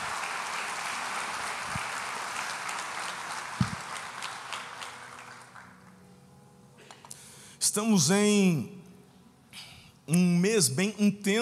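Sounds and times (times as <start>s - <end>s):
audience applauding: 0.0s - 6.0s
speech: 7.7s - 8.8s, 10.1s - 11.4s.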